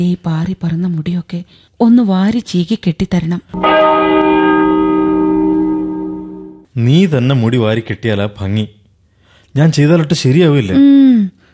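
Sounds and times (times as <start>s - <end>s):
speech: 0.0s - 4.4s, 6.8s - 8.8s, 9.5s - 11.3s
church bell striking two o'clock: 3.6s - 6.7s.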